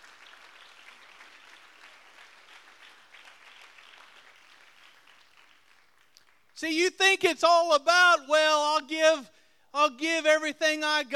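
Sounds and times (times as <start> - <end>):
audience clapping hands: 0.0 - 6.6
speech: 6.6 - 11.1.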